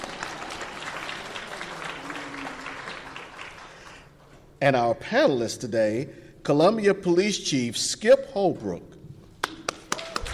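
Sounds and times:
audience applause: 0:00.0 - 0:04.1, 0:09.7 - 0:10.3
speech: 0:04.6 - 0:09.0.

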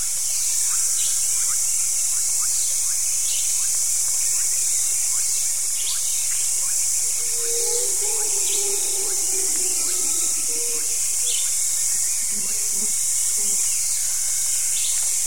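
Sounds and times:
morning insects: 0:00.0 - 0:15.2
low warbling bird call: 0:07.0 - 0:13.8.

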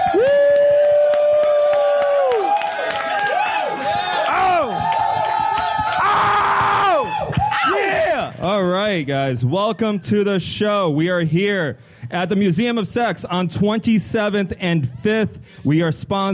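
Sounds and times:
live audience at the Museum of Sex cheering and screaming: 0:00.0 - 0:08.3
speech: 0:08.9 - 0:16.3.

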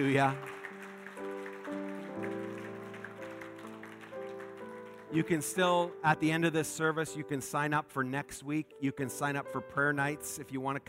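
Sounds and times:
speech: 0:00.0 - 0:00.5, 0:05.1 - 0:10.8
crowd clapping: 0:00.0 - 0:05.8.

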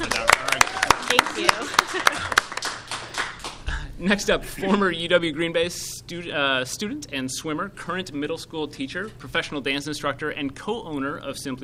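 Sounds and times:
hands clapping: 0:00.0 - 0:03.6
laughter: 0:01.3 - 0:02.6
speech: 0:04.0 - 0:11.6.

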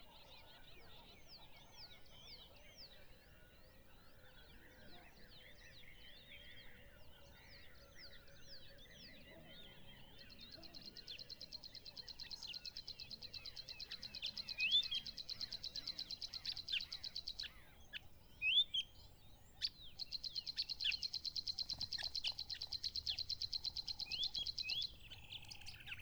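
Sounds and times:
birds chirping at Mmabolela Reserve in Limpopo, South Africa: 0:09.5 - 0:26.0.

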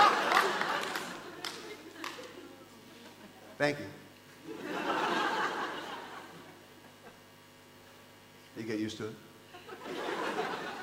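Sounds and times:
audience applause: 0:00.0 - 0:02.4
laughter: 0:00.0 - 0:03.6, 0:04.4 - 0:07.3, 0:09.5 - 0:10.8
speech: 0:03.6 - 0:04.8, 0:08.6 - 0:10.0.

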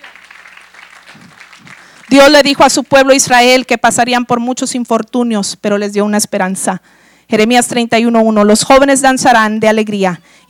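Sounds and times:
audience applauding: 0:00.0 - 0:02.2
speech: 0:02.1 - 0:10.4.

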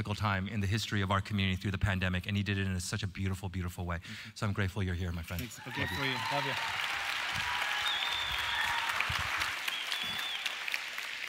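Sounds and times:
speech: 0:00.0 - 0:07.0
faint whistles or cheers: 0:05.6 - 0:10.8
audience applause: 0:05.6 - 0:11.2.

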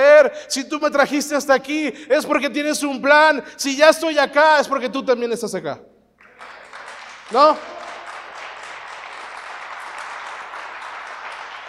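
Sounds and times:
speech: 0:00.3 - 0:05.9, 0:07.3 - 0:07.7
audience applause: 0:06.2 - 0:11.6.

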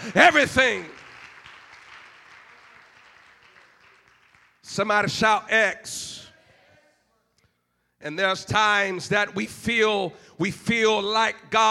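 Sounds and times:
hands clapping: 0:00.0 - 0:04.8
speech: 0:00.1 - 0:00.9, 0:04.7 - 0:06.2, 0:08.0 - 0:11.7.

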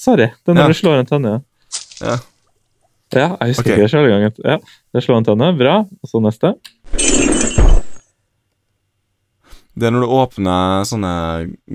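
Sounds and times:
speech: 0:00.0 - 0:02.3, 0:03.1 - 0:07.4, 0:09.8 - 0:11.7
video game coins spilling out: 0:06.9 - 0:08.0.

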